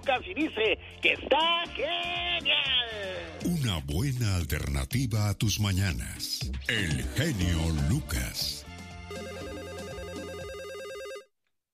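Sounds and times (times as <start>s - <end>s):
speech: 0.0s - 8.7s
electronic telephone ringer signalling an incoming call to a radio show: 9.1s - 11.3s.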